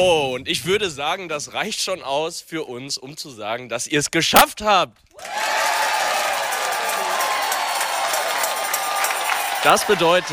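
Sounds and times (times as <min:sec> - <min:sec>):
speech: 0:00.0 - 0:05.7, 0:09.6 - 0:10.3
crowd cheering and clapping: 0:05.2 - 0:10.3.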